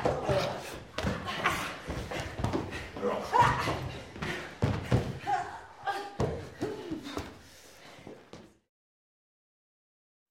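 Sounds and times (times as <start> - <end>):
people fighting: 0.0 - 7.5.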